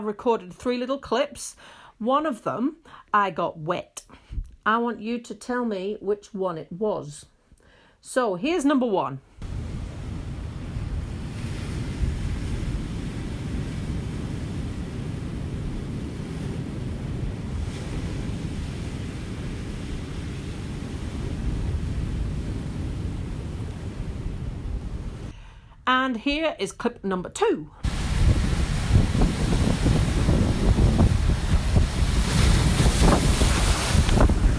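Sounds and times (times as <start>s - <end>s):
speech: 0.0s - 7.3s, 8.0s - 9.3s, 26.0s - 27.9s
buffeting wind noise at Riverton: 9.4s - 25.3s, 27.8s - 34.5s
sea waves crashing at Riverton: 9.4s - 25.4s, 27.8s - 34.5s.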